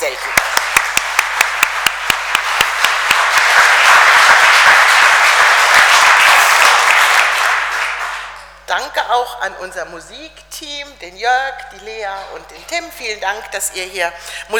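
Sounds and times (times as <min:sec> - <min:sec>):
audience applause: 0:00.0 - 0:08.6
speech: 0:08.8 - 0:14.5.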